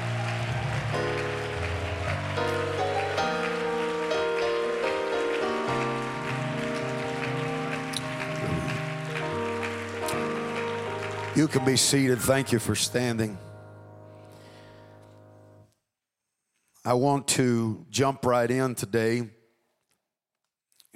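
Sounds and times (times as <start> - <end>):
audience hand clapping: 0.0 - 12.8
speech: 11.4 - 13.5, 16.9 - 19.4.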